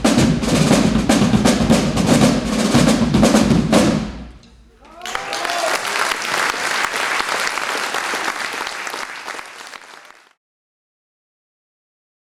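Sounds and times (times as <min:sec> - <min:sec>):
drums: 0:00.0 - 0:05.7
laughter: 0:04.4 - 0:10.2.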